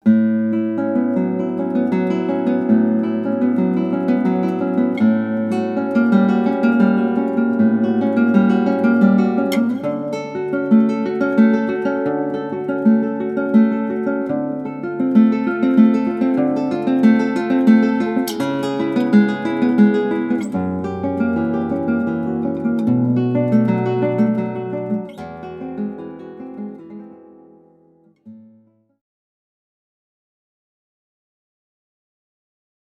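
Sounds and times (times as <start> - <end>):
guitar piece: 0.0 - 28.9.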